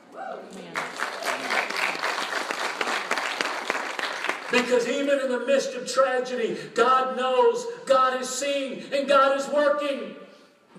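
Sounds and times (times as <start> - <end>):
audience applause: 0.7 - 4.8
speech: 4.5 - 10.2.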